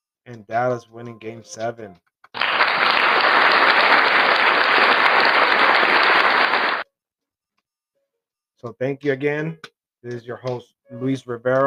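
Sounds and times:
speech: 0.3 - 2.1, 8.6 - 11.6
crowd applause: 2.4 - 6.8.

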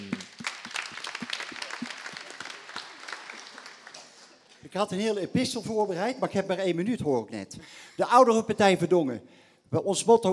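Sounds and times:
audience applause: 0.0 - 4.6
speech: 4.7 - 10.3.

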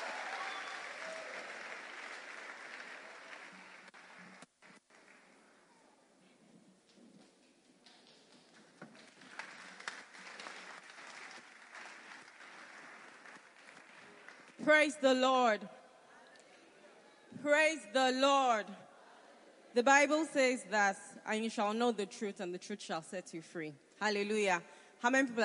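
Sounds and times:
audience applause: 0.0 - 5.6, 8.0 - 14.6
speech: 14.6 - 15.8, 17.5 - 18.8, 19.8 - 25.4.

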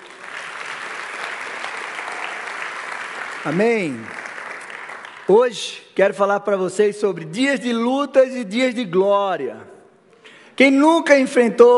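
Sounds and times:
audience applause: 0.0 - 5.4
speech: 3.4 - 4.2, 5.3 - 9.7, 10.6 - 11.7.

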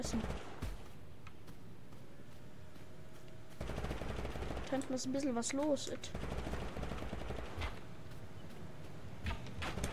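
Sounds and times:
speech: 0.0 - 0.6, 4.7 - 6.4
video game gunfire: 0.0 - 0.8, 3.6 - 5.0, 6.1 - 7.8, 9.3 - 9.9.

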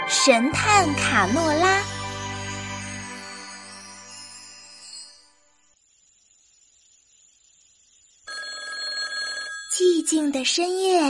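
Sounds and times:
speech: 0.1 - 1.9, 10.2 - 11.0
telephone bell ringing: 8.3 - 10.1.

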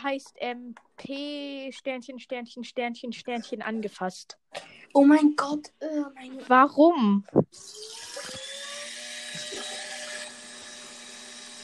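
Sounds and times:
speech: 0.0 - 8.5
whining drill-like machine at a construction site: 7.6 - 11.6.

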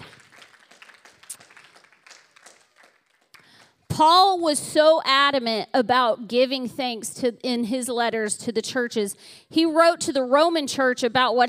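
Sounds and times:
audience clapping: 0.0 - 3.9
speech: 4.0 - 11.4.

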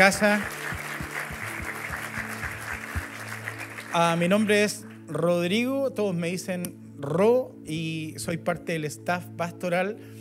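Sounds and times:
speech: 0.0 - 0.6, 3.9 - 10.2
audience applause of welcome: 0.0 - 4.5.

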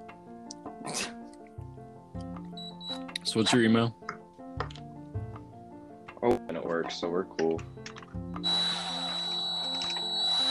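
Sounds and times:
speech: 3.3 - 4.0, 6.9 - 7.8
power drill running: 8.4 - 10.4.

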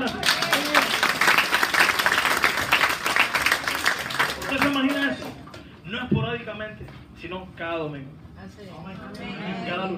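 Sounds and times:
audience applause: 0.0 - 5.4
speech: 6.4 - 9.9.

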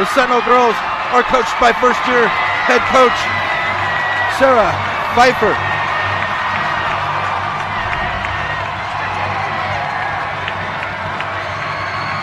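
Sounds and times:
speech: 0.0 - 3.4, 4.4 - 5.7
crowd cheering at basketball game: 0.0 - 12.2
low droning hum: 5.6 - 11.5.

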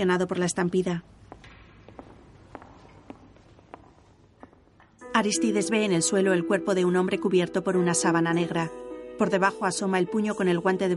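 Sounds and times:
speech: 0.0 - 1.2, 5.2 - 10.9
footsteps of a man walking through an empty theatre: 1.1 - 5.0.

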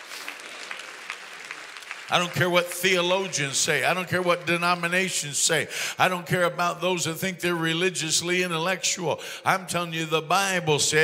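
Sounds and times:
audience clapping hands: 0.0 - 5.7
speech: 2.1 - 11.0.

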